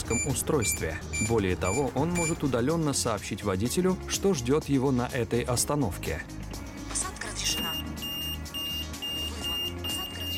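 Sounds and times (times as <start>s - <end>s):
tram door audio beacon beeping: 0.0s - 2.4s, 7.6s - 10.3s
speech: 0.1s - 6.4s.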